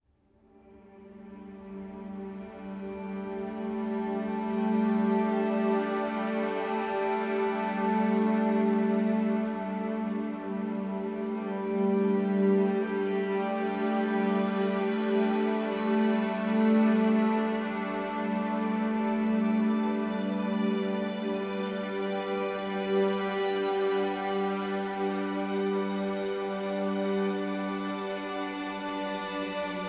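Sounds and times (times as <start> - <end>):
new age spa spiritual fitness music: 0.6 - 29.8.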